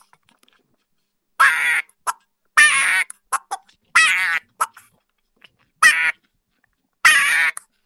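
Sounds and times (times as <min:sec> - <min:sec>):
duck sound: 0:01.4 - 0:04.9, 0:05.8 - 0:06.2, 0:07.0 - 0:07.7.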